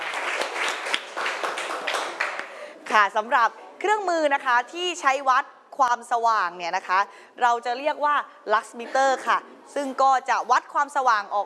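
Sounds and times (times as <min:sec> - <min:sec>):
small group clapping for the group 5 representative: 0:00.0 - 0:02.6
speech: 0:03.0 - 0:11.4.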